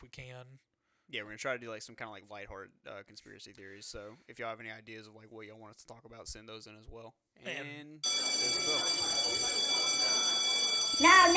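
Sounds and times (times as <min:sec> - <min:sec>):
speech: 0:00.0 - 0:09.8, 0:10.9 - 0:11.3
school bell ringing: 0:08.0 - 0:11.3.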